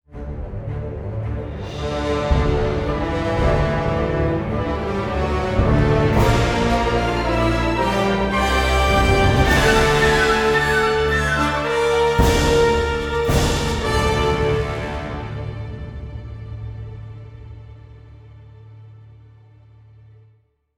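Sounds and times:
hatchery music: 0.0 - 20.7.

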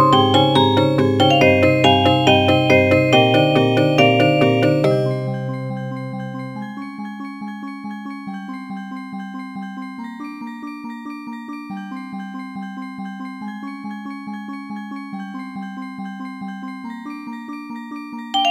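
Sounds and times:
music box: 0.0 - 6.5.

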